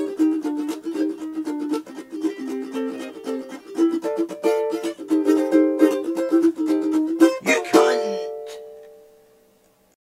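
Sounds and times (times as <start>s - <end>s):
ukulele theme tune: 0.0s - 9.2s.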